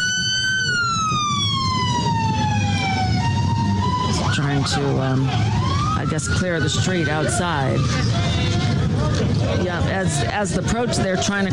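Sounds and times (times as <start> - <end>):
vehicle siren from unmarked white van: 0.0 - 8.4
speech: 4.6 - 11.5.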